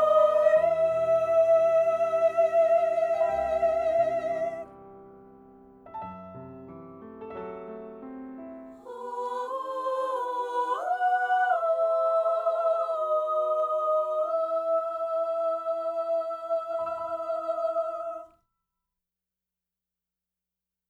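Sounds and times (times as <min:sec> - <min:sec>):
treble soprano voice singing: 0:00.0 - 0:04.7, 0:08.8 - 0:18.3.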